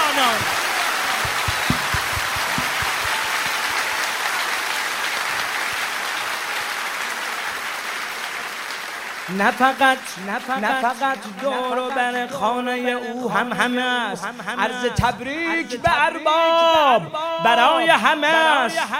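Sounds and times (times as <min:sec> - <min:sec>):
crowd hand clapping at a Persian-language religious celebration: 0:00.0 - 0:12.2
speech: 0:09.3 - 0:18.9.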